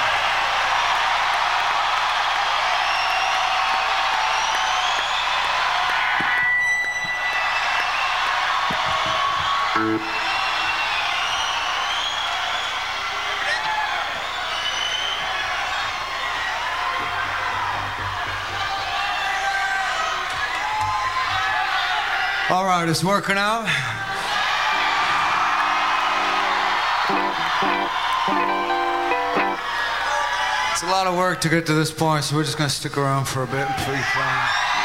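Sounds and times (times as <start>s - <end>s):
large crowd cheering and whooping: 0.0s - 22.5s, 23.8s - 30.8s, 33.6s - 34.8s
whistles from crowd: 2.8s - 3.5s, 4.3s - 5.6s, 6.2s - 8.2s, 9.4s - 15.4s
speech: 9.8s - 10.1s, 22.8s - 24.0s, 30.8s - 34.7s.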